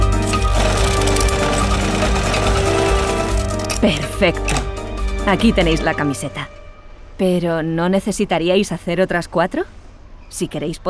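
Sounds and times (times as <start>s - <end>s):
sewing machines running: 0.1s - 3.8s
speech: 3.9s - 4.6s, 5.3s - 6.6s, 7.2s - 10.8s.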